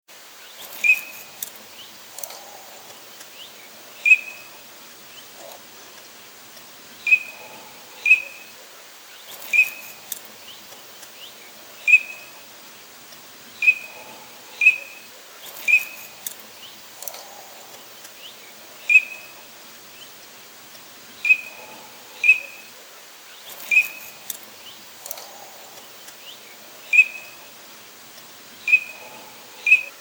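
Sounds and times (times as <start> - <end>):
bird whistled call notes: 0.7 - 1.3, 4.0 - 4.5, 7.0 - 8.5, 9.4 - 10.0, 11.8 - 12.3, 13.6 - 15.0, 15.6 - 16.1, 18.8 - 19.4, 21.2 - 22.6, 23.5 - 24.2, 26.8 - 27.4, 28.7 - 29.9.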